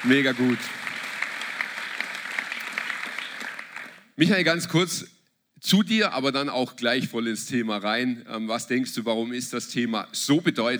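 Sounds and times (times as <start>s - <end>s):
speech: 0.0s - 0.9s, 4.2s - 10.7s
audience applause: 0.0s - 4.1s.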